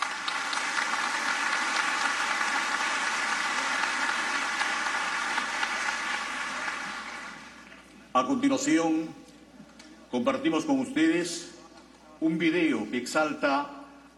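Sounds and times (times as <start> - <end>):
audience applause: 0.0 - 7.7
speech: 8.2 - 9.2, 10.1 - 11.5, 12.2 - 14.1.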